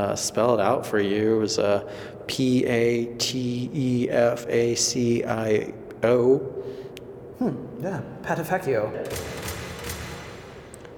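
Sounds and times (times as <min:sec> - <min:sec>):
speech: 0:00.0 - 0:06.8, 0:07.4 - 0:09.5
door clicking open: 0:09.0 - 0:10.9.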